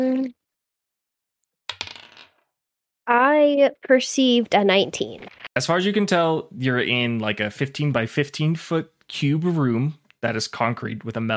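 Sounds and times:
dice rolling on a table: 1.7 - 2.4
speech: 3.1 - 11.3.

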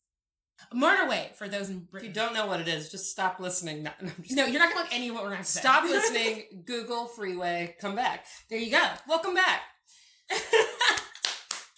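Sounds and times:
speech: 0.7 - 9.7, 10.3 - 11.1
laughter: 10.3 - 11.2
hand clapping: 10.8 - 11.7.

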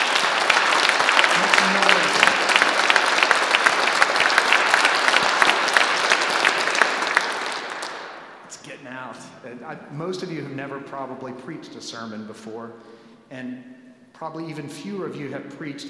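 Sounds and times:
audience clapping: 0.0 - 8.4
speech: 9.7 - 15.8.

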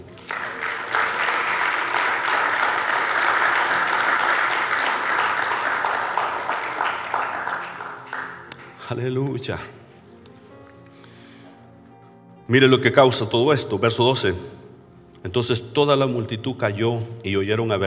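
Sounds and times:
audience applauding: 0.0 - 8.9
speech: 8.9 - 9.8, 12.5 - 14.6, 15.2 - 17.8.

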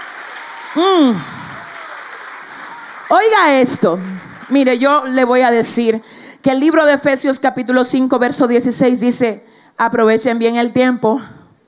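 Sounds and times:
audience applause: 0.0 - 5.2
speech: 0.7 - 1.3, 3.1 - 11.4.

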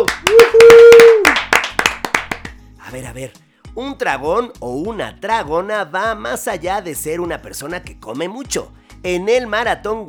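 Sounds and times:
applause: 0.0 - 2.6
speech: 2.9 - 10.0.

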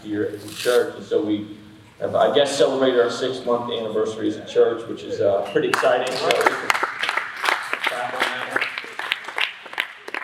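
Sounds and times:
speech: 0.0 - 6.8
audience applauding: 5.7 - 10.2.

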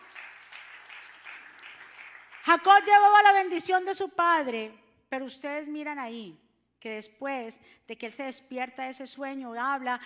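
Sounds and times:
audience applause: 0.0 - 2.5
speech: 2.5 - 10.0.

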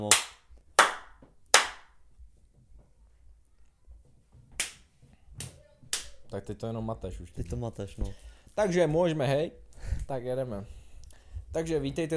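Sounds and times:
single hand clap for camera sync: 0.0 - 2.0, 4.6 - 6.2
speech: 6.4 - 10.8, 11.5 - 12.1.

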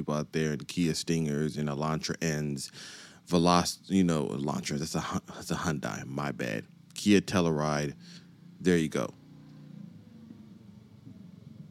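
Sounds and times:
speech: 0.0 - 9.2
motorcycle engine: 6.0 - 11.7.

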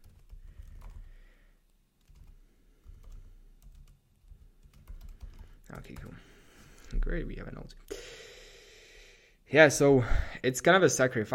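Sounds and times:
typing notes on a computer keyboard: 0.0 - 1.1, 2.0 - 6.2
speech: 5.7 - 8.2, 9.5 - 11.3.

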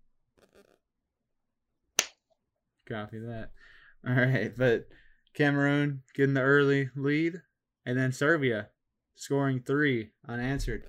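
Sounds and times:
hand slapping a knee: 2.0 - 2.2
speech: 2.9 - 10.8.

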